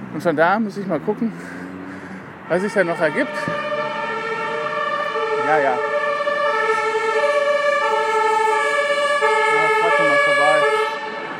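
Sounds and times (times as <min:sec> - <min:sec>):
speech: 0:00.1 - 0:01.6, 0:02.5 - 0:03.6, 0:05.5 - 0:05.9
fire engine siren: 0:02.4 - 0:11.3.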